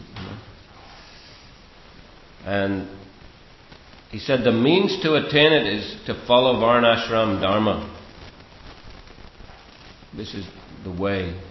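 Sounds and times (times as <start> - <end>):
door closing thump: 0.0 - 0.5
speech: 2.4 - 3.0, 4.1 - 8.0, 10.2 - 11.4.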